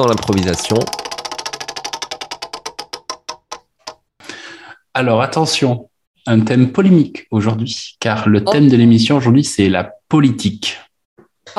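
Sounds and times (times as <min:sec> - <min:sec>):
speech: 0:00.0 - 0:01.0, 0:05.0 - 0:10.8
spinning prize wheel ticking: 0:00.0 - 0:04.0.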